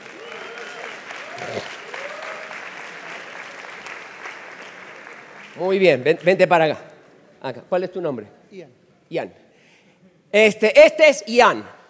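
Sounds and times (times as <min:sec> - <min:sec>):
audience applause: 0:00.0 - 0:06.4
speech: 0:01.4 - 0:01.8, 0:05.6 - 0:09.4, 0:10.3 - 0:11.8.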